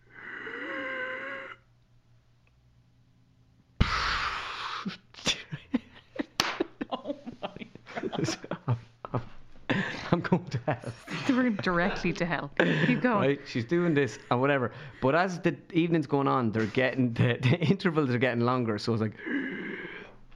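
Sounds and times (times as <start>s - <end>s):
voice imitating the labored breathing of a dying grandmother: 0.0s - 1.7s, 3.8s - 5.4s, 19.2s - 20.2s
speech: 4.8s - 5.0s, 10.7s - 19.4s
people laughing: 5.3s - 15.2s.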